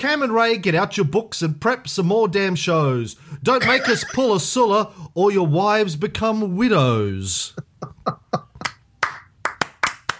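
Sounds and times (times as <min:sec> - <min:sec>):
speech: 0:00.0 - 0:08.2
laughter: 0:03.5 - 0:04.5
applause from a small group: 0:08.6 - 0:10.1.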